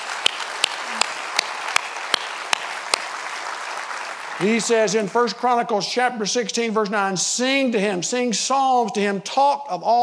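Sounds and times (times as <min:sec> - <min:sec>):
audience applause: 0:00.0 - 0:05.4
speech: 0:04.4 - 0:10.0.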